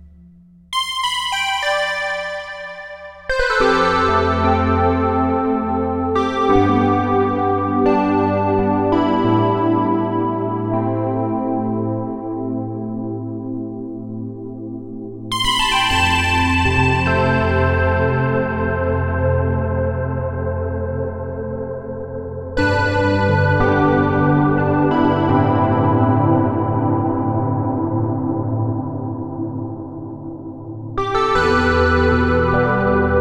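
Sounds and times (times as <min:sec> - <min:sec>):
electric piano tines with stage reverb: 0:00.8 - 0:14.0, 0:15.3 - 0:33.2.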